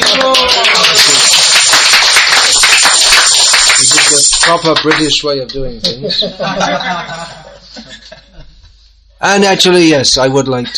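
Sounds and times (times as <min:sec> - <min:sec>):
audience clapping: 0:00.0 - 0:05.2
speech: 0:04.5 - 0:07.9, 0:09.2 - 0:10.7
laughter: 0:05.9 - 0:08.8.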